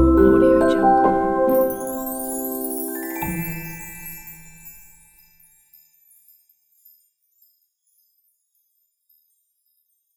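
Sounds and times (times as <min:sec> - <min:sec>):
warm magical fairy piano: 0:00.0 - 0:05.4.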